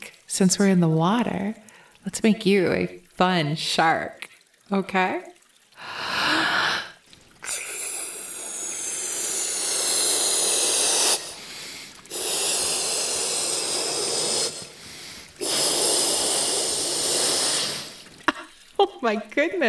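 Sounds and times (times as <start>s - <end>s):
speech: 0.4s - 6.0s, 19.0s - 19.6s
blowing air into an inflatable toy: 5.8s - 18.3s.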